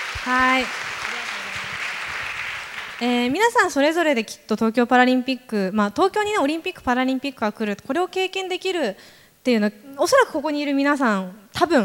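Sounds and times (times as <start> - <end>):
audience applause: 0.0 - 3.4
speech: 0.2 - 0.9, 3.0 - 11.8.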